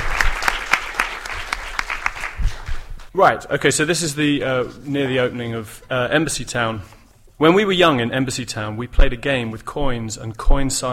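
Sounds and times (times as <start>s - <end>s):
audience clapping at a reading: 0.0s - 3.1s
speech: 3.1s - 10.9s.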